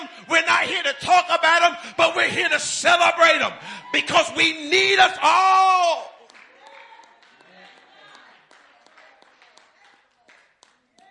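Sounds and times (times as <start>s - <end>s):
speech: 0.6s - 6.1s
clapping: 6.2s - 11.0s.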